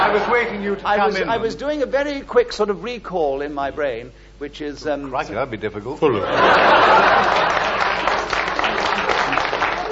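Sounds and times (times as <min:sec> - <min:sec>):
laughter: 0:00.0 - 0:00.7, 0:06.1 - 0:09.9
speech: 0:00.1 - 0:07.8
audience applause: 0:06.8 - 0:09.9.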